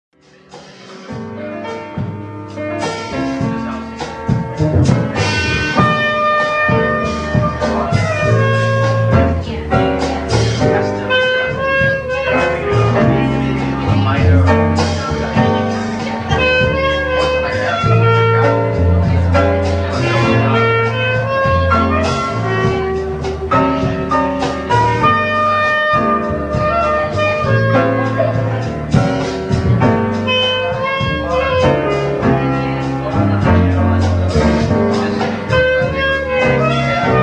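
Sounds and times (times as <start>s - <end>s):
jazz duo trio quartet playing: 0.2s - 37.2s.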